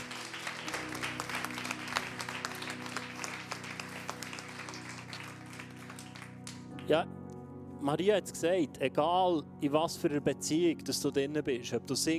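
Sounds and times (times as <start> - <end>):
audience applause: 0.0 - 6.8
speech: 6.9 - 7.1, 7.8 - 12.1.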